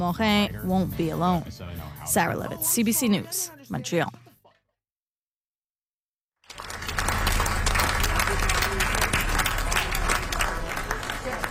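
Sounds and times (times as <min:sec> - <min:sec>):
speech: 0:00.0 - 0:04.2
crowd applauding in the street: 0:06.4 - 0:11.4.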